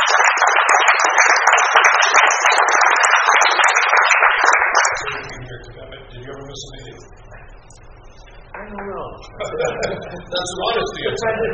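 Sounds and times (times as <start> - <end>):
audience applause: 0.0 - 5.4
laughter: 9.3 - 11.5
speech: 10.4 - 11.5.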